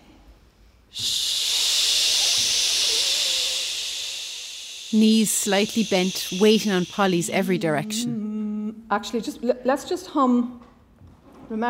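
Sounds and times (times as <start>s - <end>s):
choir exhaling a long shh sound: 0.9s - 8.0s
speech: 4.9s - 8.3s, 8.9s - 10.6s, 11.5s - 11.6s.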